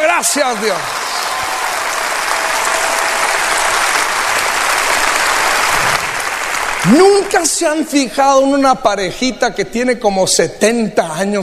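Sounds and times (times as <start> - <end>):
applause: 0.0 - 8.0
speech: 0.2 - 1.0, 6.8 - 11.4.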